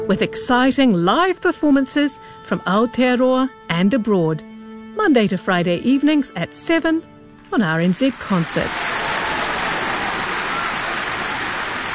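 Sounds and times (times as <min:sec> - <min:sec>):
speech: 0:00.1 - 0:08.9
audience applause: 0:08.1 - 0:11.9.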